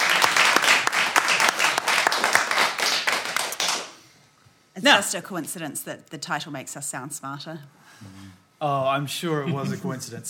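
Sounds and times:
audience applause: 0.0 - 3.9
speech: 4.8 - 10.2.

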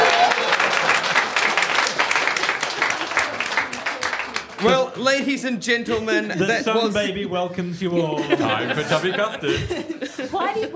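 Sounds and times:
crowd applauding: 0.0 - 5.4
speech: 4.6 - 10.7
laughter: 4.7 - 10.7.

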